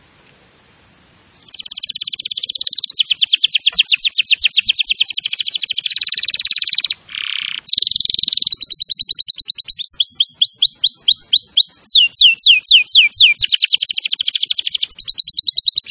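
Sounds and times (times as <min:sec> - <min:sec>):
Canary singing trills and whistled notes: 0:00.6 - 0:15.9.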